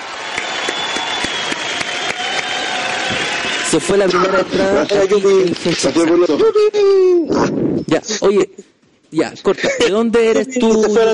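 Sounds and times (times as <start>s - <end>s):
audience applause: 0.0s - 5.6s
speech: 3.1s - 11.1s.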